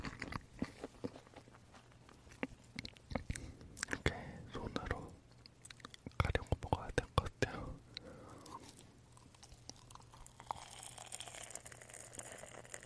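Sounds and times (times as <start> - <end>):
chewing marshmallows: 0.0 - 4.1, 4.8 - 6.4, 8.0 - 12.8
faint steady hum: 0.0 - 12.8
mouth clicks and smacks: 2.3 - 4.1, 4.7 - 10.2.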